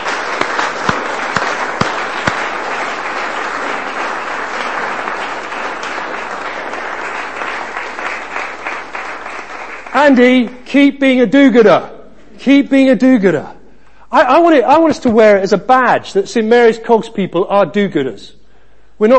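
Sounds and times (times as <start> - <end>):
audience applause: 0.0 - 10.5
speech: 10.1 - 18.4, 19.0 - 19.1.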